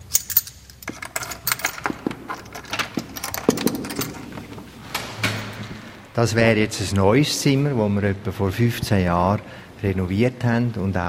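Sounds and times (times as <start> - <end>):
bunch of keys jangling as a door is unlocked: 0.0 - 6.0
speech: 6.2 - 11.0.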